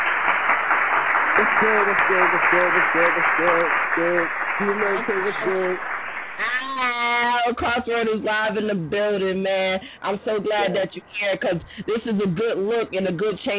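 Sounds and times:
crowd applause: 0.0 - 7.3
voiced cheering or shouting: 1.3 - 7.3
speech: 1.4 - 13.5.

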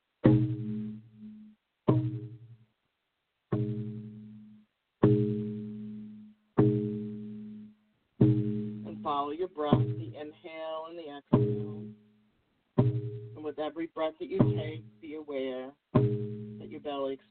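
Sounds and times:
handmade drum decorated with Kokopelli beating a slow steady beat: 0.2 - 2.5, 3.5 - 4.3, 6.6 - 7.6, 8.2 - 10.4, 11.3 - 12.0, 12.8 - 13.6, 14.3 - 15.2, 16.0 - 16.9
speech: 13.8 - 15.8.

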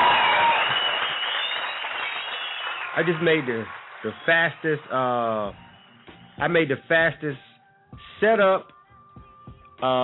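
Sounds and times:
crowd applauding: 0.0 - 4.9
speech: 3.0 - 5.6, 6.4 - 8.7, 9.8 - 10.0.

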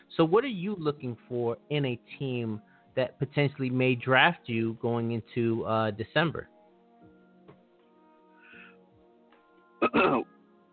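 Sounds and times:
speech: 0.2 - 6.5, 9.9 - 10.3
throat clearing during a sports league interview: 9.8 - 10.3.

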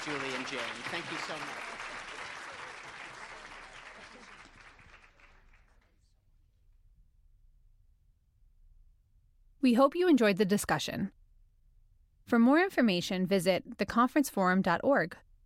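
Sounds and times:
speech: 0.0 - 2.5, 9.6 - 11.2, 12.3 - 15.3
audience applause: 0.0 - 6.0.

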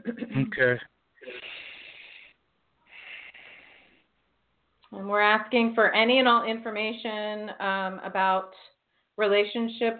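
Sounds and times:
speech: 0.4 - 1.0, 4.9 - 9.9
slow deep breaths during a guided heart-centre breathing exercise: 1.2 - 4.2.

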